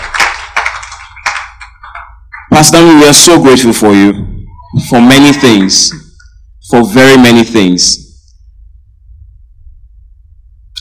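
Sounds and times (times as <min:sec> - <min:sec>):
audience applause: 0:00.0 - 0:02.5
speech: 0:02.6 - 0:04.1, 0:04.9 - 0:06.0, 0:06.7 - 0:08.0.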